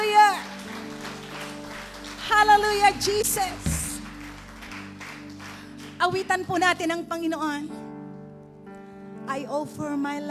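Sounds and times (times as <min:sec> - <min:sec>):
crowd clapping: 0:00.0 - 0:06.7
speech: 0:02.6 - 0:03.7, 0:06.0 - 0:07.8, 0:09.3 - 0:10.3.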